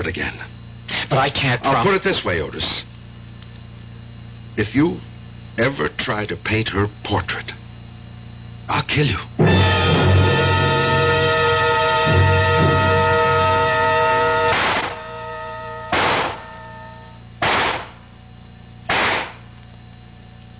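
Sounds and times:
speech: 0:00.0 - 0:02.9, 0:04.6 - 0:07.6, 0:08.7 - 0:09.5
sustained droning tone: 0:09.4 - 0:20.5
gunshots fired at a shooting range: 0:14.5 - 0:15.0, 0:15.9 - 0:16.5, 0:17.4 - 0:18.0, 0:18.9 - 0:19.4.

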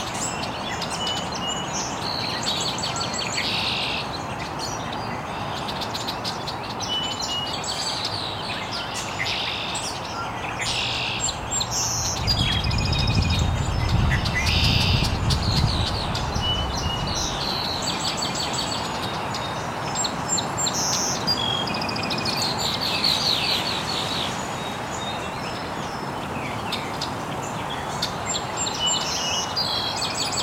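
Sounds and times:
birds chirping: 0:00.0 - 0:30.4
loud low rumbling noise: 0:11.2 - 0:17.5.

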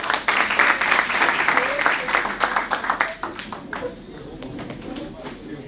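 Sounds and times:
audience applauding: 0:00.0 - 0:04.0.

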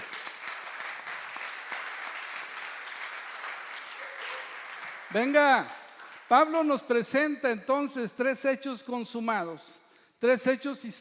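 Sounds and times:
audience applause: 0:00.0 - 0:06.3
speech: 0:05.1 - 0:10.9.

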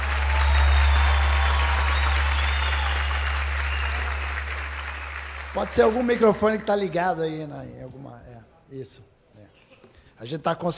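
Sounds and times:
audience applause: 0:00.0 - 0:07.2
speech: 0:05.6 - 0:09.1, 0:10.2 - 0:10.7.

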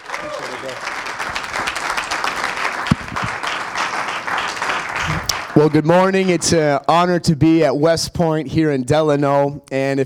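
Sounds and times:
church congregation applauding a guest speaker: 0:00.0 - 0:06.8
speech: 0:00.2 - 0:01.0, 0:05.6 - 0:10.0.

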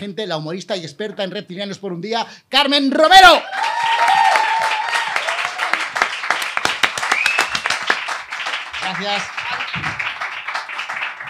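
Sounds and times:
speech: 0:00.0 - 0:03.7, 0:09.0 - 0:09.9
high whistles and cheers: 0:03.4 - 0:05.9, 0:07.0 - 0:07.9
audience applause: 0:03.5 - 0:11.2.

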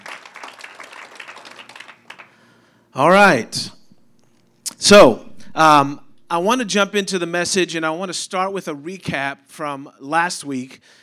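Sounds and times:
audience applause: 0:00.0 - 0:02.4
speech: 0:03.0 - 0:03.8, 0:04.8 - 0:11.0.

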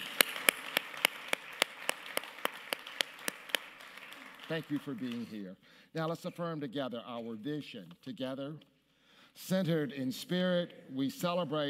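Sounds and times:
audience applauding guests: 0:00.0 - 0:05.4
speech: 0:04.5 - 0:08.7, 0:09.4 - 0:11.6.

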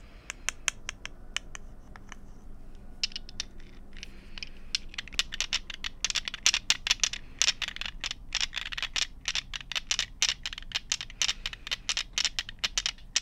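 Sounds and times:
light scraping: 0:01.5 - 0:06.1
handful of marbles being gathered up: 0:03.0 - 0:13.2
rummaging through a bag of nail polish bottles: 0:03.0 - 0:13.2.

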